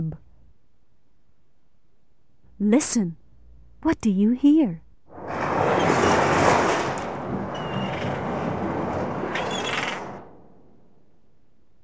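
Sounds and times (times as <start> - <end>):
speech: 2.6 - 3.2, 3.8 - 4.8
ocean waves: 5.1 - 10.6.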